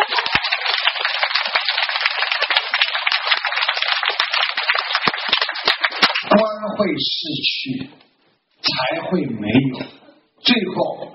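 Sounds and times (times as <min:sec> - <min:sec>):
audience applause: 0:00.0 - 0:06.3
speech: 0:06.8 - 0:08.1, 0:08.7 - 0:11.1.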